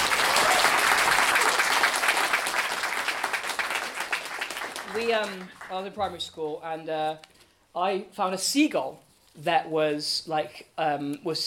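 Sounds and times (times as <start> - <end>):
audience applause: 0.0 - 5.8
speech: 5.0 - 11.4.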